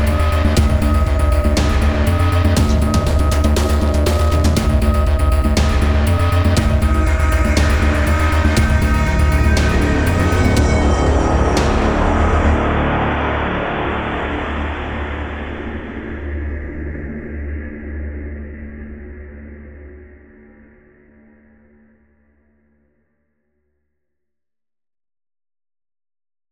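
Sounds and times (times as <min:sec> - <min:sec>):
rising synth: 0:00.0 - 0:15.9.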